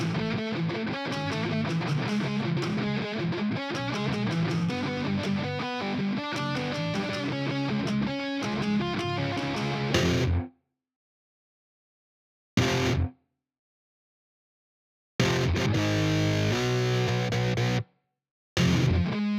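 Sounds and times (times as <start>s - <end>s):
guitars: 0.0s - 10.5s, 12.6s - 13.1s, 15.2s - 17.8s, 18.6s - 19.3s.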